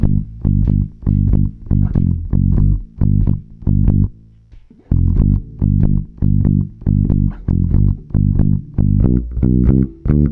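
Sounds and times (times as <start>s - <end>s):
bass groove: 0.0s - 10.3s.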